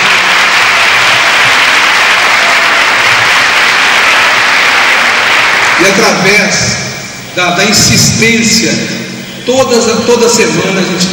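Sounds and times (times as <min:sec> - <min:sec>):
audience applause: 0:00.0 - 0:06.6
speech: 0:05.8 - 0:06.8, 0:07.4 - 0:11.1.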